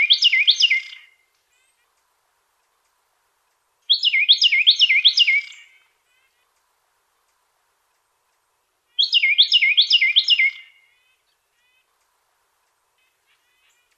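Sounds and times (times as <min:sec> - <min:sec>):
Carolina wren singing repeated two-part phrases: 0:00.0 - 0:13.9.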